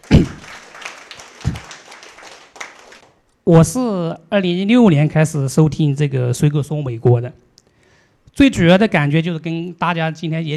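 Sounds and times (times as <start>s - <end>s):
audience clapping: 0.0s - 3.3s
speech: 3.5s - 7.5s, 8.4s - 10.5s.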